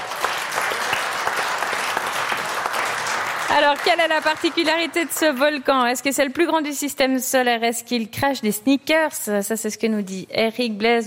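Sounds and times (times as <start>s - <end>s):
audience applause: 0.0s - 5.5s
speech: 3.5s - 11.0s.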